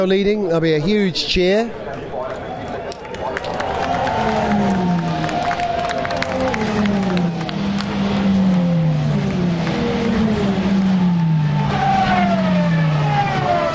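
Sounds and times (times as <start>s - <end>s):
speech: 0.0s - 2.0s
Aston Martin race cars screaming past: 3.4s - 13.7s.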